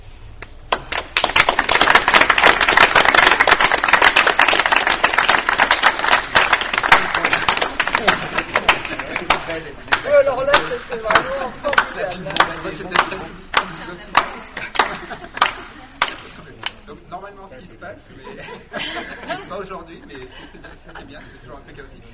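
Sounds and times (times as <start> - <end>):
audience clapping in synchrony: 0.4 - 16.9
laughter: 4.8 - 17.0, 18.0 - 21.9
speech: 10.9 - 14.5, 17.6 - 22.1.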